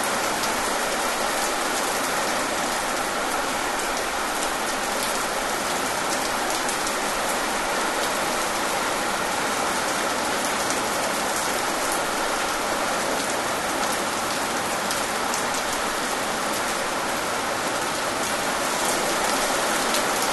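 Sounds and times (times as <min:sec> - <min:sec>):
pleasant rain: 0:00.0 - 0:20.3.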